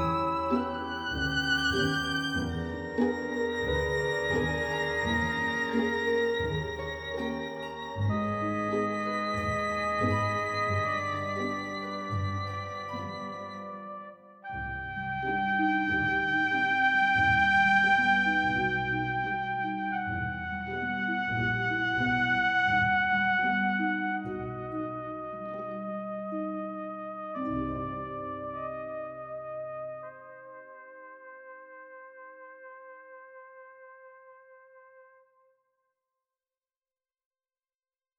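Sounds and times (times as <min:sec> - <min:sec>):
violin: 0:00.0 - 0:29.0.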